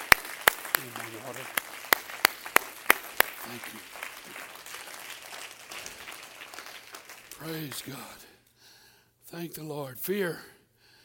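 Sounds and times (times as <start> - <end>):
audience clapping hands in a steady rhythm: 0.0 - 8.4
speech: 0.8 - 1.7, 3.4 - 4.6, 7.4 - 8.3, 9.3 - 10.6.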